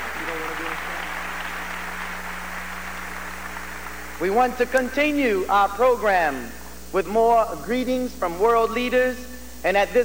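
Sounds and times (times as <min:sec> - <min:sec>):
audience applause: 0:00.0 - 0:04.2
speech: 0:04.2 - 0:10.0.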